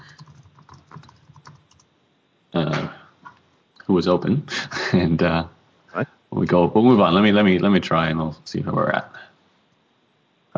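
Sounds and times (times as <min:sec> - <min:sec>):
typing on a computer keyboard: 0:00.0 - 0:01.9
speech: 0:03.9 - 0:09.2.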